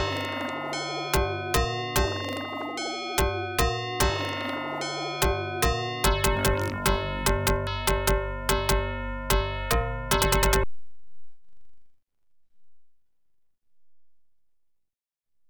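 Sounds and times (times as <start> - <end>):
OPL2 FM synth chip music: 0.0 - 10.7.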